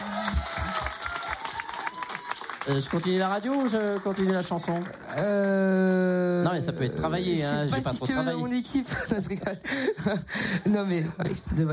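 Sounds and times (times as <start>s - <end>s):
crowd applause: 0.0s - 7.3s
speech: 2.6s - 11.7s
laughter: 8.8s - 10.8s.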